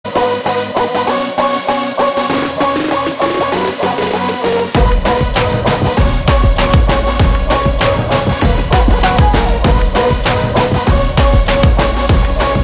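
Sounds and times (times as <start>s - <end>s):
mass background music: 0.1s - 12.6s.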